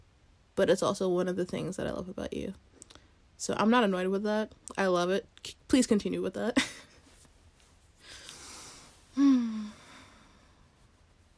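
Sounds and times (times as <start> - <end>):
speech: 0.6 - 2.7, 3.4 - 6.9
big yawn: 9.1 - 10.4.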